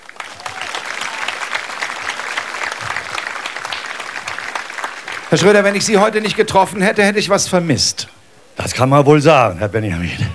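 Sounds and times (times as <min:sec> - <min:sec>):
audience applause: 0:00.0 - 0:06.5
speech: 0:05.3 - 0:10.3.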